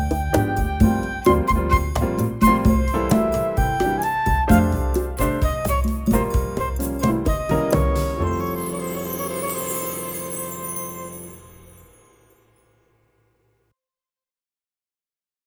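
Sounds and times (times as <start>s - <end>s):
flute playing: 0.0s - 12.3s.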